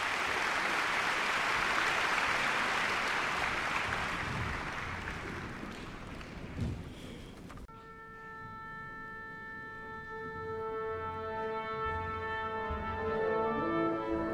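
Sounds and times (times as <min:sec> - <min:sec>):
large audience applause in concert hall: 0:00.0 - 0:07.3
orchestra tuning: 0:07.7 - 0:14.3.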